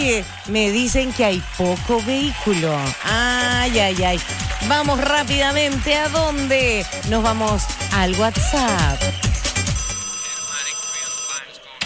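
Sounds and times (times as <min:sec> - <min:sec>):
speech: 0:00.0 - 0:09.4
WhatsApp call ringtone on a phone: 0:09.7 - 0:11.6.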